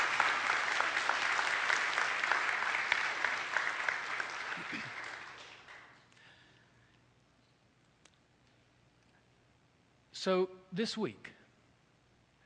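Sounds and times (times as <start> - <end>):
audience clapping: 0.0 - 6.3
speech: 10.2 - 11.4.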